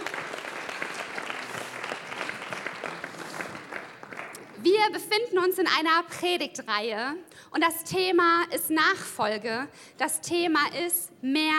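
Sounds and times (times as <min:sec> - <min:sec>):
audience applause: 0:00.0 - 0:04.6
speech: 0:04.6 - 0:11.5.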